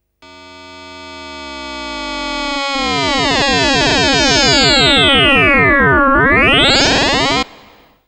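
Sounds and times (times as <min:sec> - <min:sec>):
drum and bass effect: 0:01.5 - 0:07.8.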